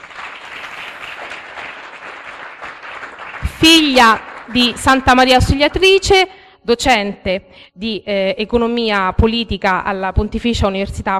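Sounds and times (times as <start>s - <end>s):
audience applause: 0.0s - 4.8s
speech: 3.6s - 11.1s.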